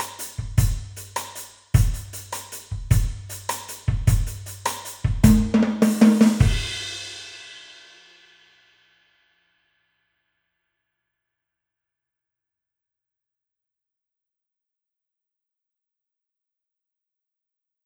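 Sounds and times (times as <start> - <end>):
big and bright hybrid drums: 0.0 - 7.4.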